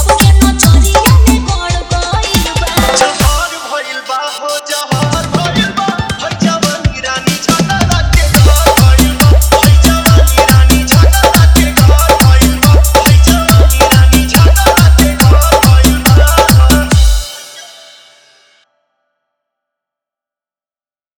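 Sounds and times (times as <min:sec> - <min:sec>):
hard kick drum: 0:00.0 - 0:03.6, 0:04.9 - 0:17.4.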